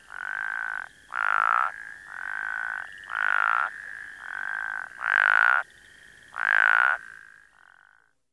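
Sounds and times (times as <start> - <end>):
plains spadefoot rasping croaks: 0.0 - 5.7, 6.3 - 8.0.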